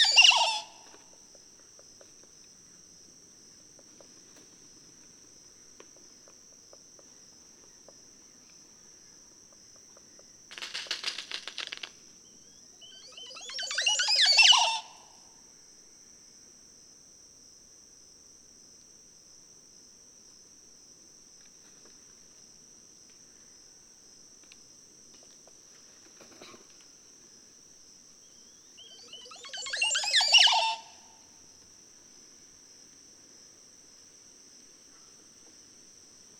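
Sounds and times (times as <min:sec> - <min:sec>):
Montezuma oropendola calling: 0:00.0 - 0:00.8, 0:12.5 - 0:15.1, 0:28.3 - 0:31.1.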